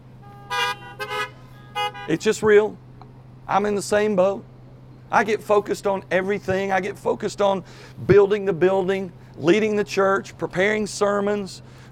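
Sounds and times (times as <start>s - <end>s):
car horn honks: 0.2s - 2.5s
speech: 2.1s - 2.8s, 3.5s - 4.5s, 5.1s - 11.8s.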